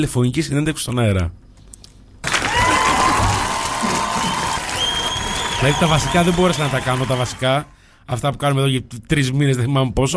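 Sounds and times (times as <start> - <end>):
speech: 0.0 - 1.4, 5.6 - 10.1
crowd cheering and whooping: 2.2 - 7.6
loud applause: 2.2 - 7.7.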